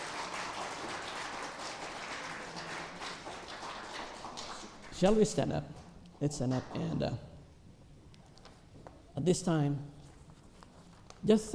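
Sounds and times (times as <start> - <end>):
audience clapping hands: 0.0 - 5.2
speech: 5.0 - 7.3, 9.2 - 10.0, 11.2 - 11.5.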